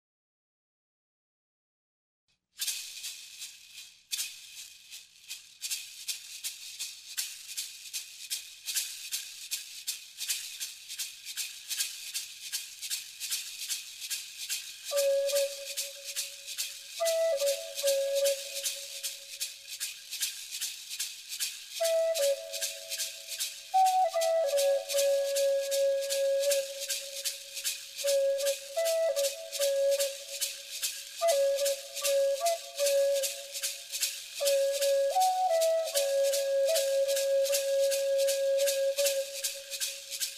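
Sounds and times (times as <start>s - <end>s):
zen flute music: 14.9s - 16.4s, 17.0s - 19.2s, 21.8s - 40.2s.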